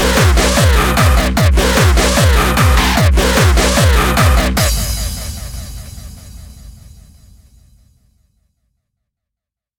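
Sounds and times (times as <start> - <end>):
hardstyle ringtone music: 0.0 - 5.4.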